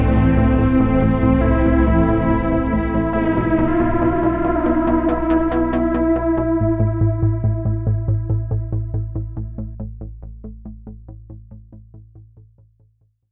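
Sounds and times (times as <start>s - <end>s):
neon synth soundscape: 0.0s - 9.8s.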